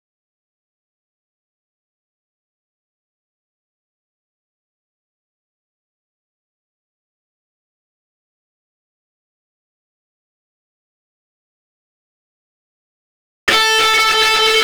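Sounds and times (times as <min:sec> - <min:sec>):
lead guitar: 0:13.5 - 0:14.6.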